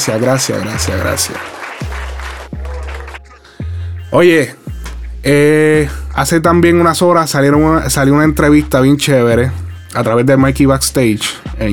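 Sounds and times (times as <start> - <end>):
speech: 0.0 - 2.0, 4.1 - 4.6, 5.2 - 11.7
applause: 0.0 - 3.4.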